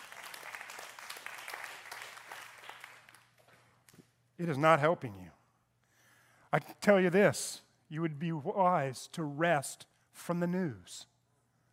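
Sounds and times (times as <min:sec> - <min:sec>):
audience clapping: 0:00.0 - 0:03.7
speech: 0:04.4 - 0:05.4, 0:06.5 - 0:11.1.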